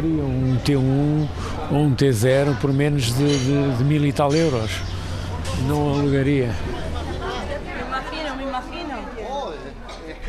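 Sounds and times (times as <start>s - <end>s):
speech: 0.0s - 5.0s, 5.6s - 6.8s
chatter of many voices on a busy tourist street: 0.0s - 10.2s.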